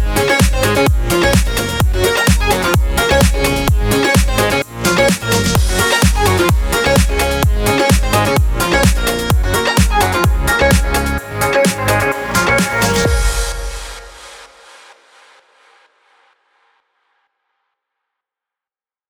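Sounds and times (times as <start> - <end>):
house music arpeggio bed in F sharp major at 128 BPM: 0.0 - 14.8.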